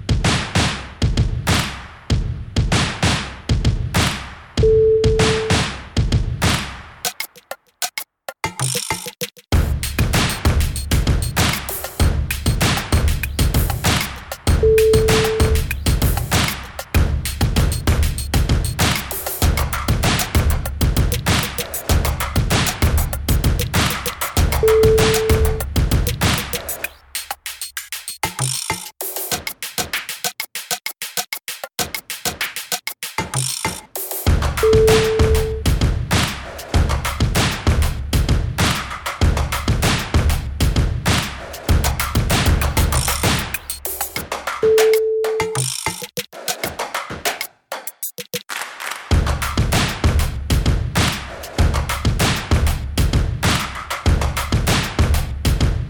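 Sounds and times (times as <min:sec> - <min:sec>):
groovebox clap: 0:00.3 - 0:02.1, 0:02.7 - 0:04.5, 0:05.2 - 0:40.3, 0:41.1 - 0:55.8.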